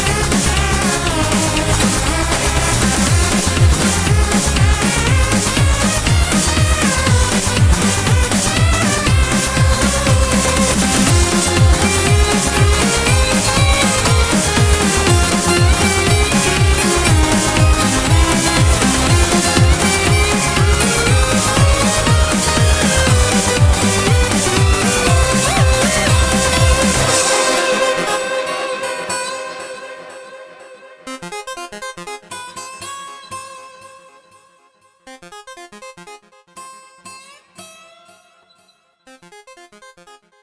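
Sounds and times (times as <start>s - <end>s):
chiptune train music: 0.0s - 32.2s.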